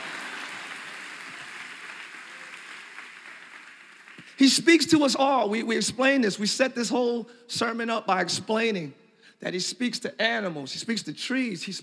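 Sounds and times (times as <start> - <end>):
audience clapping hands: 0.0 - 4.9
speech: 4.4 - 11.8.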